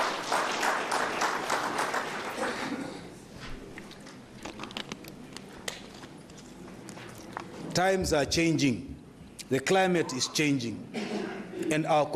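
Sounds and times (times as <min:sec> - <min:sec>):
audience applause at a public address in Kunene: 0:00.0 - 0:02.8
speech: 0:07.8 - 0:08.9, 0:09.5 - 0:11.0, 0:11.7 - 0:12.1.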